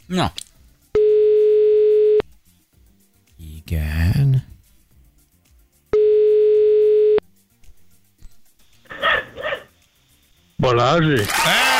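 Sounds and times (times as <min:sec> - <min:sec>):
speech: 0:00.1 - 0:00.4, 0:03.7 - 0:04.5, 0:10.6 - 0:11.7
telephone ringing tone: 0:01.0 - 0:02.2, 0:06.0 - 0:07.2
dog barking: 0:08.9 - 0:09.7.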